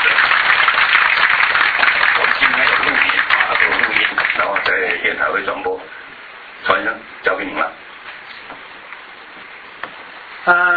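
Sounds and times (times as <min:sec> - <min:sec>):
audience applause welcoming a speaker: 0:00.0 - 0:05.2
speech: 0:05.1 - 0:05.9, 0:06.7 - 0:07.8, 0:10.4 - 0:10.7.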